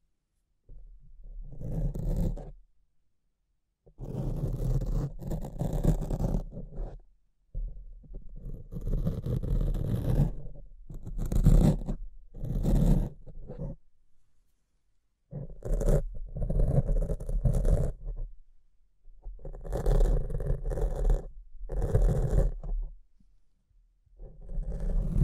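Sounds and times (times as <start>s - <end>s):
scratching and rubbing on a microphone: 1.2s - 2.5s, 4.0s - 7.0s, 7.6s - 13.8s, 15.3s - 18.3s, 19.2s - 22.9s, 24.2s - 25.2s.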